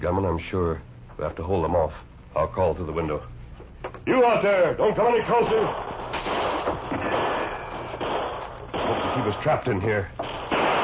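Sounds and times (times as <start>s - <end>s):
speech: 0.0s - 3.4s, 4.0s - 5.9s, 9.2s - 10.4s
gunfire from all sides of a building: 5.3s - 10.8s.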